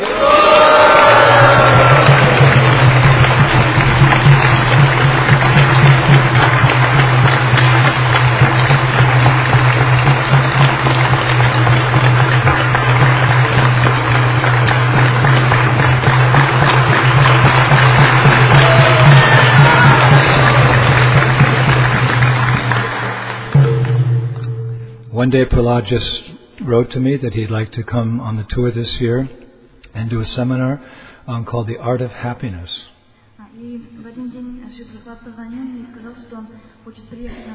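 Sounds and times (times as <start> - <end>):
audience applause: 0.0 - 24.1
speech: 25.6 - 29.4, 30.0 - 32.9.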